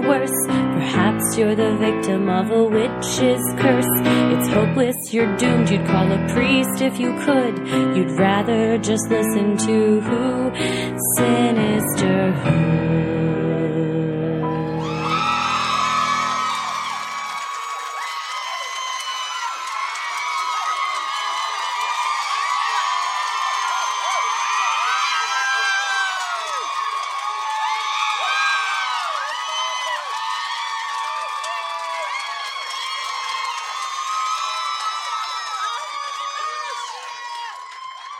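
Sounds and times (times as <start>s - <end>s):
speech: 0.0s - 13.3s
crowd cheering and hooting: 14.5s - 38.1s.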